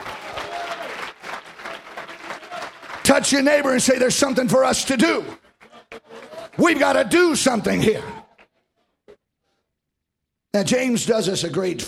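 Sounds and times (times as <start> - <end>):
church congregation clapping their hands during a service: 0.0 - 8.6
speech: 3.2 - 5.4, 6.6 - 8.2, 10.6 - 11.8.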